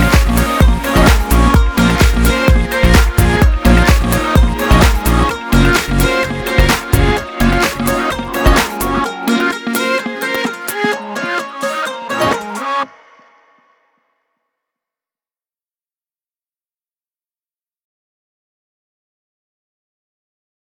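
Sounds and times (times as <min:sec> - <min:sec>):
ambient remix music: 0:00.0 - 0:13.2.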